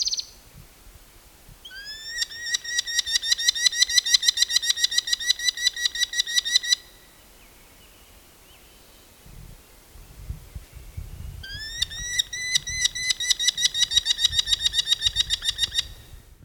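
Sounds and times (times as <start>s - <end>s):
Falco columbarius merlin calling: 0.0s - 0.4s, 1.6s - 9.1s, 11.4s - 16.2s.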